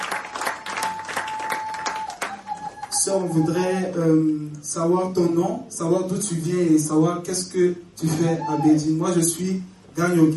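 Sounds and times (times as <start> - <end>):
church congregation clapping to welcome a newcomer: 0.0 - 3.2
speech: 3.0 - 10.3.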